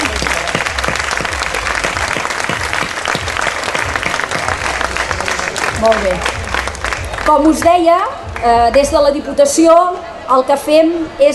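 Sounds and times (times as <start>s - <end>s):
audience applause: 0.0s - 7.7s
speech: 5.8s - 6.4s, 7.2s - 11.3s.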